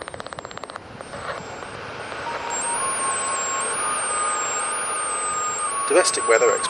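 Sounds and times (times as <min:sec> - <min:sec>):
hairdryer blowing: 0:00.9 - 0:06.6
speech: 0:06.1 - 0:06.6.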